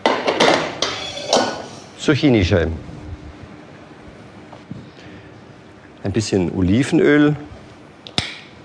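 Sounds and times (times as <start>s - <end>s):
metal frying pans clanking down onto a stove: 0.0s - 1.7s
speech: 2.0s - 2.9s, 6.1s - 7.5s.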